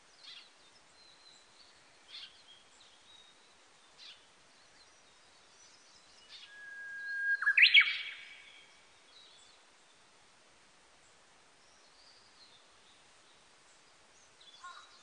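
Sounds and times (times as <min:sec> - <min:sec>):
Japanese bush warbler singing: 0:00.2 - 0:09.6, 0:14.4 - 0:15.0.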